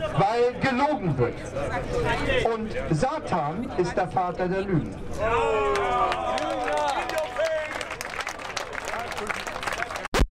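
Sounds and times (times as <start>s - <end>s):
speech: 0.2s - 6.9s
audience applause: 5.7s - 10.2s.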